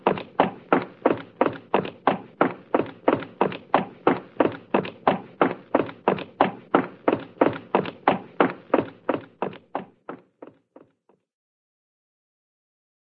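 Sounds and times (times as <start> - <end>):
cartoon giant footsteps: 0.0 - 11.2.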